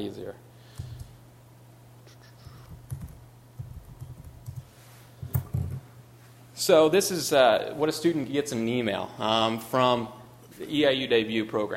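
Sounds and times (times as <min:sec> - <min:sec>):
speech: 0:00.0 - 0:00.5, 0:06.6 - 0:11.7
typing on a computer keyboard: 0:02.7 - 0:04.7.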